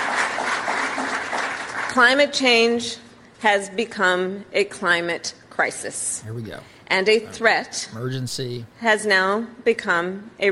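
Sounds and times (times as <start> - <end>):
applause: 0.0 - 2.2
speech: 2.0 - 10.5.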